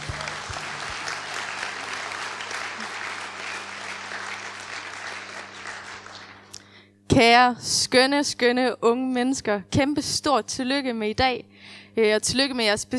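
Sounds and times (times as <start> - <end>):
crowd clapping for young people at a church youth celebration: 0.0 - 6.7
speech: 7.1 - 12.9.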